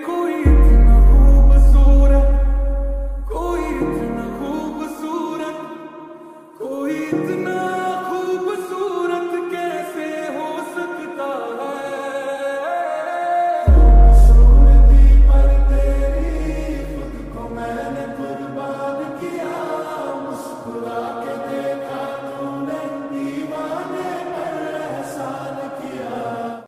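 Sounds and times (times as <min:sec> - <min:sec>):
slowed lofi music with reverb: 0:00.0 - 0:18.2.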